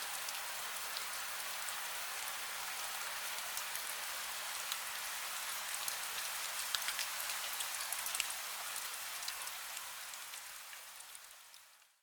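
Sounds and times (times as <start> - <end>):
gentle rain: 0.0 - 12.0.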